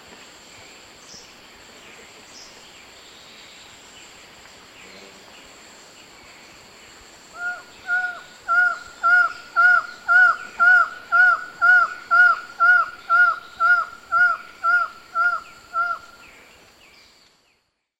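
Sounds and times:
Buckley's Forest Falcon in Ecuador: 7.3s - 16.3s.

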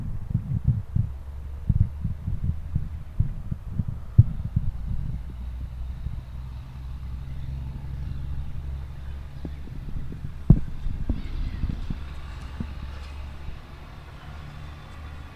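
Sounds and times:
nature sounds: 1.1s - 15.3s.

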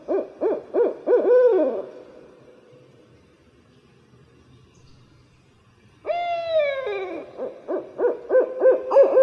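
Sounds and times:
barred owl cackling hoots: 0.0s - 2.0s, 6.1s - 9.2s.

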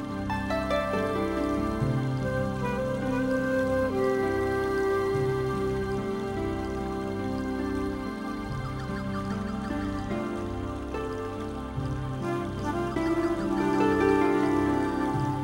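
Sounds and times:
new age ethno Asian meditation music: 0.0s - 15.4s.

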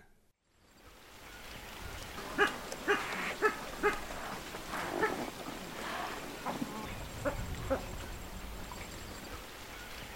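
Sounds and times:
boat-billed heron giving hoarse croaking notes in Ecuador: 2.3s - 8.0s.

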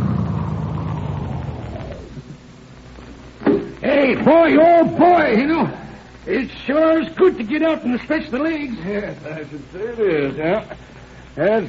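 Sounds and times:
car approaching and pulling up: 0.0s - 2.4s
speech: 4.1s - 11.6s.

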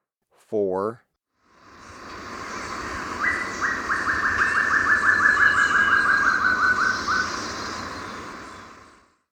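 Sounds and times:
Short-tailed antthrush song in Ecuador: 1.6s - 9.0s.

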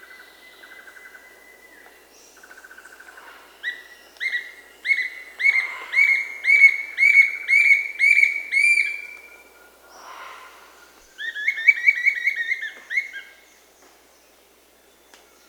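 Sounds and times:
Bright-rumped Attila Attila spadiceus calling in Peru: 3.6s - 13.3s.

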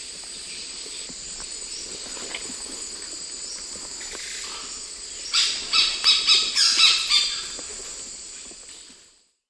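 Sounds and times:
Black-necked Red-Cotinga calling in South American eastern lowlands: 4.4s - 7.6s.

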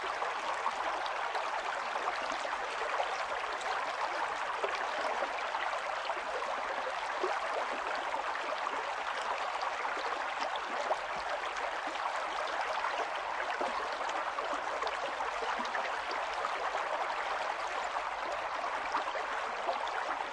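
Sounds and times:
gentle rivers and streams flowing: 0.0s - 20.3s.

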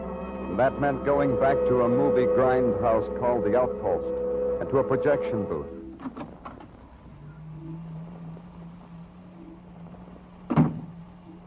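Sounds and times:
speech: 0.6s - 6.2s
door opening: 6.0s - 7.8s, 10.5s - 11.0s.

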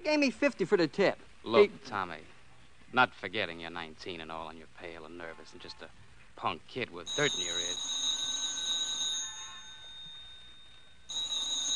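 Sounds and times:
speech: 0.0s - 2.3s, 2.9s - 8.0s
telephone ringing with electric bell tone: 7.1s - 11.7s.

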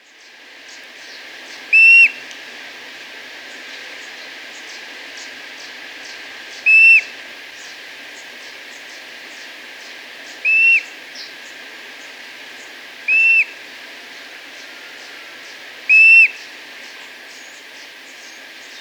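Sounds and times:
streak-throated bush-tyrant whistle in Ecuador: 1.7s - 2.2s, 6.7s - 7.1s, 10.4s - 10.9s, 13.1s - 13.6s, 15.9s - 16.4s.

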